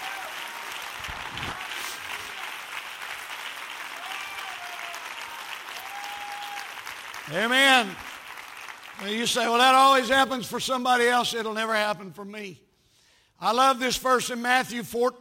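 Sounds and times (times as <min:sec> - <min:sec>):
audience clapping hands in praise: 0:00.0 - 0:10.3
speech: 0:07.3 - 0:08.1, 0:09.0 - 0:12.6, 0:13.4 - 0:15.1.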